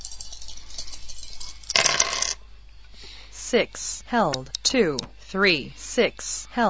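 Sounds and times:
dice rolled in a computer dice game: 1.4s - 2.4s
speech: 3.5s - 6.6s.

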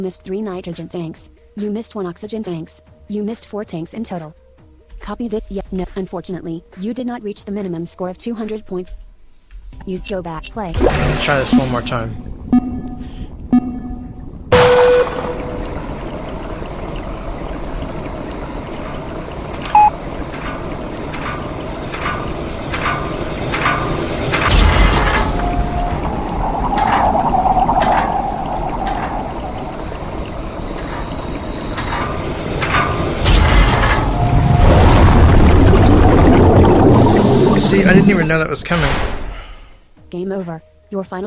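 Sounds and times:
speech: 0.0s - 4.4s, 5.0s - 9.0s, 9.7s - 12.2s, 38.3s - 39.0s, 40.2s - 41.2s
rushing water-like noise as video game player is sucked into a drain: 15.1s - 38.9s.

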